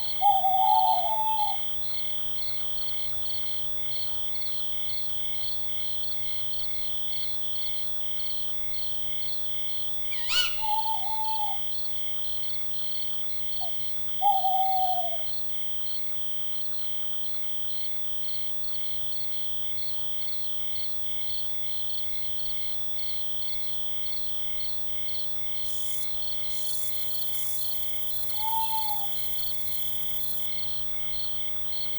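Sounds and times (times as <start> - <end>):
owl in a forest: 0.0 - 1.8, 10.1 - 11.8, 13.6 - 15.4, 25.5 - 31.9.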